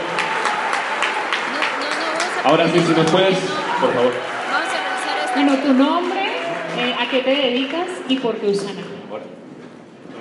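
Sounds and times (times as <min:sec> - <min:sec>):
audience applause: 0:00.0 - 0:07.9
speech: 0:02.4 - 0:04.3, 0:05.3 - 0:06.2, 0:06.8 - 0:09.4.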